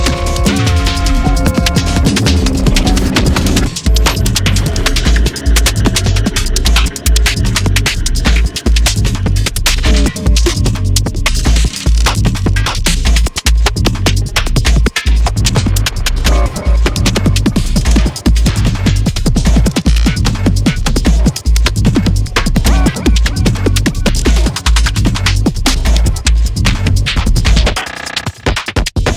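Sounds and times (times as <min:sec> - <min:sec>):
glitch sounds: 0:00.0 - 0:28.7
drums: 0:00.0 - 0:29.1.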